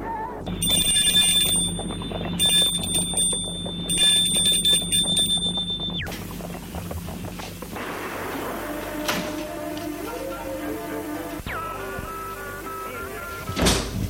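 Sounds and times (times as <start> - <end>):
low hum: 0.0 - 14.0
electric gate bell ringing: 0.5 - 6.0.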